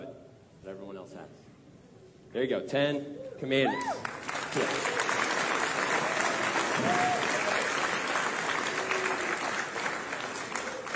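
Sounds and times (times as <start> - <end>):
speech: 0.7 - 1.5, 2.3 - 5.0
audience clapping: 3.8 - 10.9.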